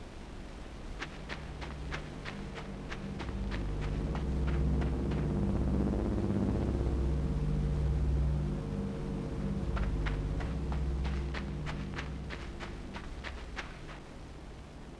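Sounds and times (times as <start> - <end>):
puzzle droning: 1.0 - 14.7.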